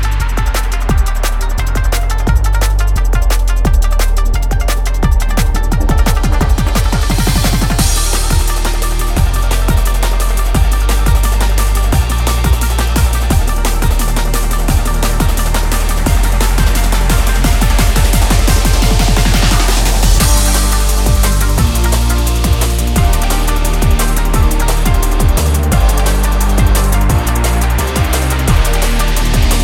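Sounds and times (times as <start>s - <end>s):
minigame music loop: 0.0s - 29.6s.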